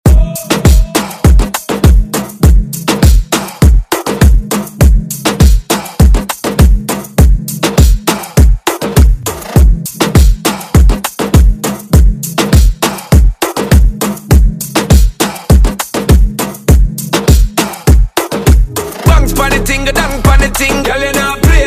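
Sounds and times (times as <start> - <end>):
Moombahton beat on Redrum drum machine: 0.0 - 21.6.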